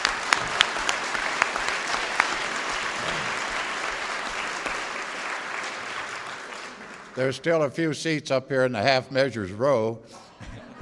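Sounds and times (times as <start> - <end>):
audience applause for the organising committee at an Al-Anon gathering: 0.0 - 7.7
speech: 7.2 - 10.3
laughter: 10.2 - 10.8.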